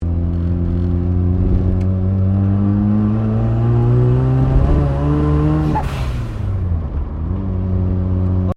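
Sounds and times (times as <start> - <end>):
Mazda RX7 Series 3 engine accelerating heard from car interior: 0.0 - 8.5
Mazda RX7 Series 3 gear change: 0.1 - 5.0.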